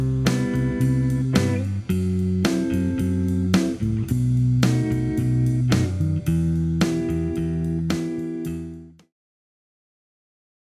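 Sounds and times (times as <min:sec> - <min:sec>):
jazz backing track: 0:00.0 - 0:08.9.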